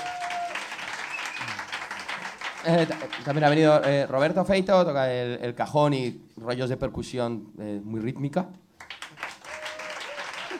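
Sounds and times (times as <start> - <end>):
audience applause: 0.0 - 4.1, 8.8 - 10.5
speech: 2.6 - 8.6.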